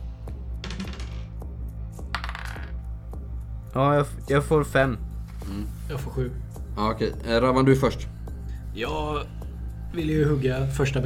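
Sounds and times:
dice rolling on a hard table: 0.6s - 1.4s, 2.0s - 2.8s
speech: 3.7s - 11.0s.

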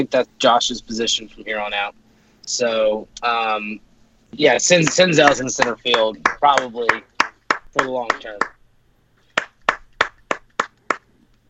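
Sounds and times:
speech: 0.0s - 7.1s, 7.7s - 8.5s
person clapping hands: 4.8s - 8.5s, 9.3s - 11.1s.

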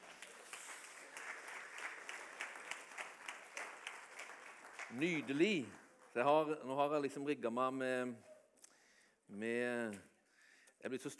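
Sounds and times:
audience applause: 0.0s - 6.4s
speech: 4.9s - 8.3s, 9.3s - 10.1s, 10.8s - 11.1s.

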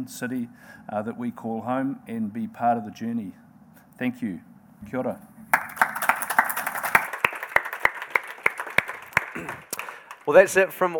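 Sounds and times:
speech: 0.0s - 3.4s, 4.0s - 5.3s, 10.3s - 10.9s
audience applause: 5.5s - 10.5s.

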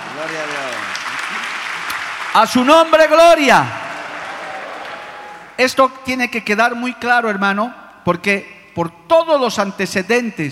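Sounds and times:
audience applause: 0.0s - 5.6s
speech: 0.2s - 1.6s, 2.3s - 3.8s, 5.6s - 10.5s.

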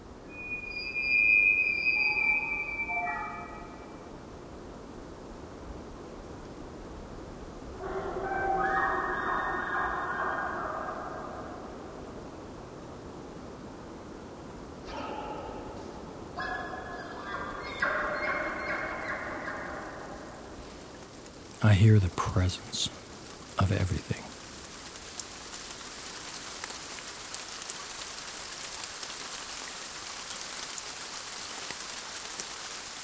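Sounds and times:
steady low hiss: 0.0s - 33.0s
elk call carrying from miles away through a landscape with cathedral-like acoustics: 0.3s - 3.8s, 7.8s - 11.6s, 14.8s - 20.5s
speech: 21.8s - 23.0s, 23.6s - 24.2s.

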